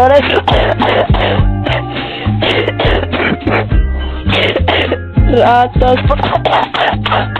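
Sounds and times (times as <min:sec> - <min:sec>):
person coughing: 0:00.2 - 0:03.7, 0:04.3 - 0:05.1, 0:06.0 - 0:07.3.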